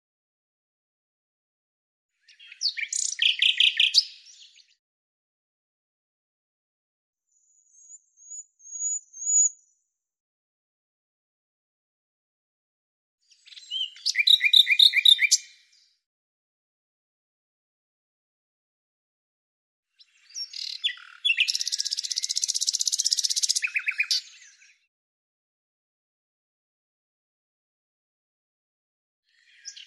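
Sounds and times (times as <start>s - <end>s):
bird song with scratchy notes and a run of high sharp notes: 2.1s - 4.8s, 7.2s - 10.0s, 13.2s - 16.1s, 19.9s - 24.9s, 29.3s - 29.8s.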